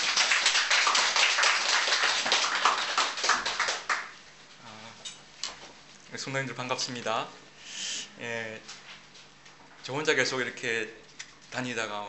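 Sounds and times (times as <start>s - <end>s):
audience applauding: 0.0s - 4.2s
speech: 6.2s - 7.4s, 8.2s - 8.8s, 9.8s - 12.0s.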